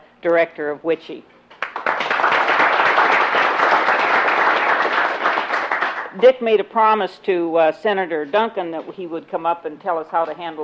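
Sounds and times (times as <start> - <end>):
speech: 0.2 - 1.4, 6.2 - 10.6
applause welcoming the executive director of WICHE to the podium: 1.5 - 6.2.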